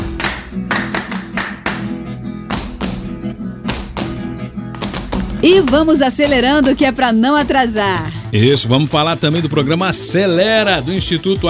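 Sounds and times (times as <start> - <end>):
rhythmic clapping: 0.0 - 8.1
catira music: 0.0 - 8.2
speech: 5.4 - 11.4.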